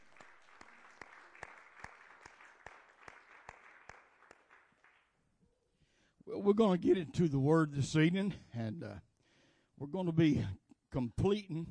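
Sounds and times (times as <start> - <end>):
audience hand clapping applause: 0.0 - 5.1
speech: 6.3 - 9.1, 9.8 - 11.6.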